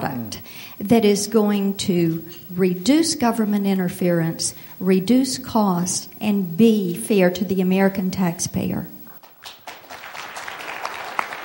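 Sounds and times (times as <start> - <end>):
speech: 0.4 - 8.9
audience applause for the president: 9.2 - 11.4.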